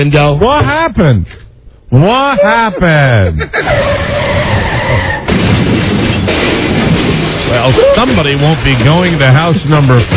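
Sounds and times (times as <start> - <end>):
speech: 0.0 - 4.3, 7.6 - 10.1
laughter: 2.0 - 4.0
car skidding: 3.6 - 5.3
car crashing: 3.7 - 10.1.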